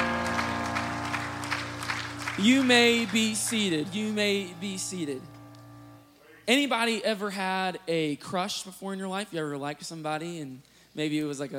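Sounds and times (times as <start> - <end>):
audience clapping hands: 0.0 - 5.9
steady low drone of held musical notes: 0.0 - 6.1
speech: 2.4 - 5.3, 6.5 - 11.5.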